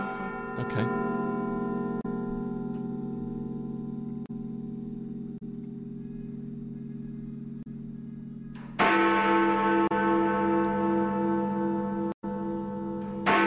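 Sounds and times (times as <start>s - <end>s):
Big Ben clock tower bell chiming: 0.0s - 4.3s, 8.8s - 13.4s
speech: 0.6s - 1.1s.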